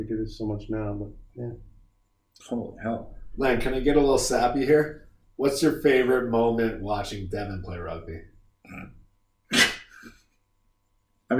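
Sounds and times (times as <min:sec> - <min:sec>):
speech: 0:00.0 - 0:01.7, 0:02.4 - 0:09.7
person snorting: 0:08.7 - 0:10.3.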